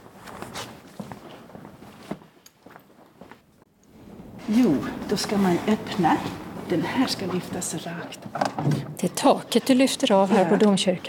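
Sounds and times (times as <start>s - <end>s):
soft footsteps walking to a tactile model of Lund Cathedral: 0.0s - 8.8s
low noise: 0.0s - 11.0s
speech: 4.5s - 11.0s.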